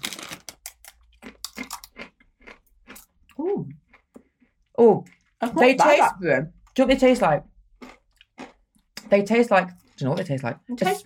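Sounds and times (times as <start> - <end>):
crunching of star-shaped curry-flavoured Christmas crisps: 0.0 - 5.4
speech: 4.8 - 7.5, 9.1 - 11.0.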